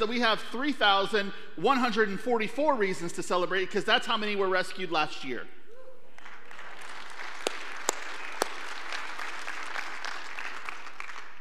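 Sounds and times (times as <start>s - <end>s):
speech: 0.0s - 5.6s
audience applause: 6.2s - 11.3s.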